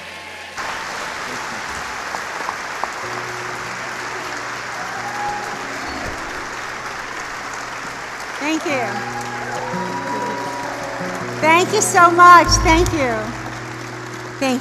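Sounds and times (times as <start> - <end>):
church audience clapping welcoming a family onto the stage: 0.6 - 14.5
speech: 8.5 - 9.2, 11.4 - 13.4, 14.4 - 14.5
faint sustained low tones: 12.4 - 14.2.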